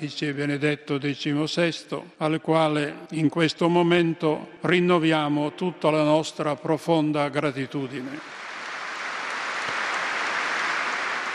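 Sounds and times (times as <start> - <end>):
speech: 0.0 - 8.4
long applause from the faithful: 8.0 - 11.3.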